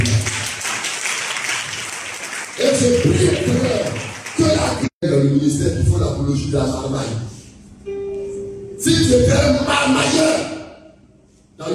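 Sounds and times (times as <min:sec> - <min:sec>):
church congregation clapping during a sermon: 0:00.0 - 0:04.9
speech: 0:05.2 - 0:08.0, 0:08.8 - 0:10.5.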